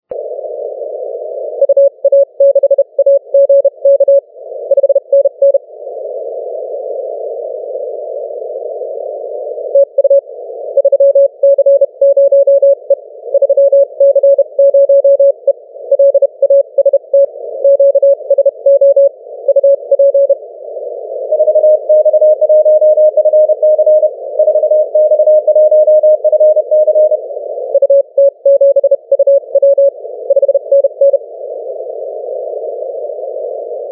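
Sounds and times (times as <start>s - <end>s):
10 m band CW morse radio signal: 1.4s - 5.6s, 9.6s - 31.4s, 33.7s - 33.9s.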